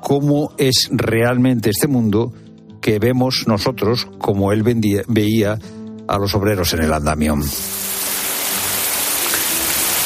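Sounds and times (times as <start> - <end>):
speech: 0.1 - 7.8
steady rain pouring: 7.6 - 10.0.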